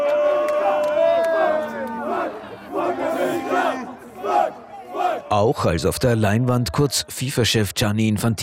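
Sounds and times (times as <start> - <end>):
football stadium crowd booing in displeasure: 0.0 - 5.6
speech: 5.3 - 8.4.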